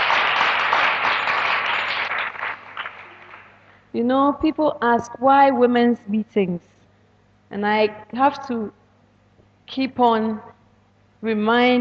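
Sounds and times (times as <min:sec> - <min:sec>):
audience applause: 0:00.0 - 0:03.7
speech: 0:03.9 - 0:06.8, 0:07.5 - 0:08.8, 0:09.7 - 0:10.6, 0:11.2 - 0:11.7.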